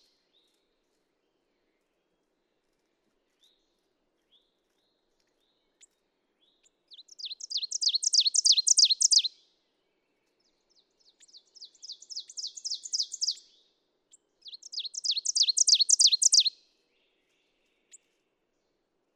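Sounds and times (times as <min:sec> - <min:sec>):
ovenbird singing: 0:06.6 - 0:09.4, 0:11.0 - 0:13.6, 0:14.4 - 0:18.1.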